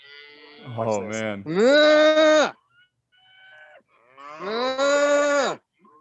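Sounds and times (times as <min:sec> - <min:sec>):
cattle herd mooing: 0:00.0 - 0:00.9, 0:04.0 - 0:05.6
speech: 0:00.6 - 0:02.6.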